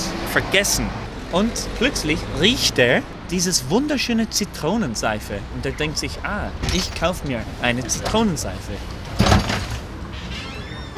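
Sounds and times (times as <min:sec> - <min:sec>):
speech: 0:00.4 - 0:09.0
shop door opening: 0:09.1 - 0:10.9.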